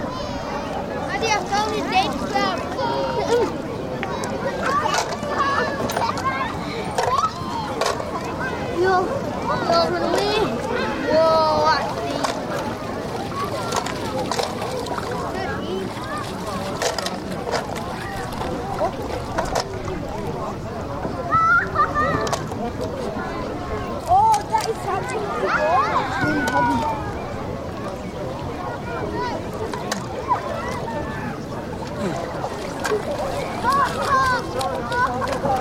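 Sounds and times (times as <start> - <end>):
children playing on a crowded beach in summer: 0.0 - 35.5.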